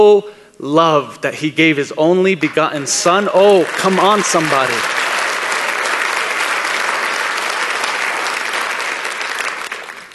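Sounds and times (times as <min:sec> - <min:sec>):
speech: 0:00.0 - 0:05.0
audience clapping: 0:02.4 - 0:10.1.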